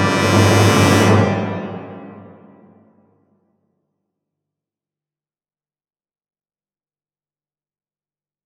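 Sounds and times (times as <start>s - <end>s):
musical stabs: 0.0s - 2.8s.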